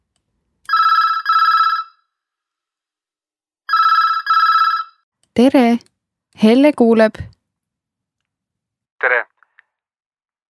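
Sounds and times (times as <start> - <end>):
telephone ringing: 0.7 - 2.1, 3.7 - 5.0
speech: 5.4 - 7.3.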